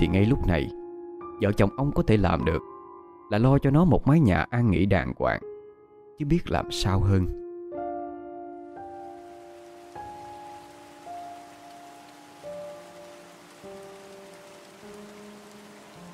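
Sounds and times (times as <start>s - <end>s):
speech: 0.0s - 0.8s, 1.4s - 2.7s, 3.3s - 5.5s, 6.2s - 7.4s
steady rain: 8.8s - 16.1s.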